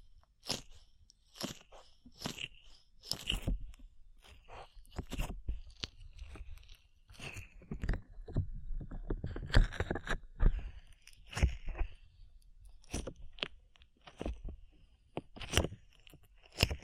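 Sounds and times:
slime being squished and pulled: 0:00.2 - 0:08.4, 0:09.2 - 0:16.8.

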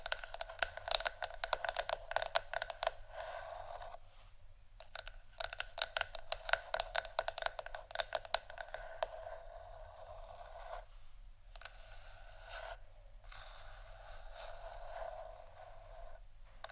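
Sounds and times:
wooden ASMR triggers tapping and clicking: 0:00.0 - 0:02.9, 0:04.8 - 0:08.6
soft steady scratching and scraping: 0:00.0 - 0:04.4, 0:06.2 - 0:16.7
faint low hum: 0:00.0 - 0:16.7.

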